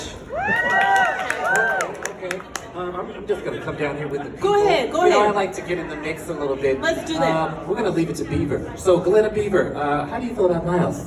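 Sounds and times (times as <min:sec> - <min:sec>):
audience applause: 0:00.4 - 0:02.7
speech: 0:02.2 - 0:11.0.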